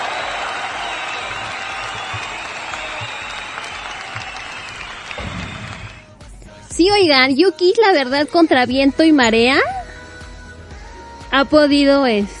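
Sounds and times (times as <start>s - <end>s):
crowd audience applause: 0.0s - 6.1s
speech: 6.8s - 9.8s, 11.3s - 12.3s.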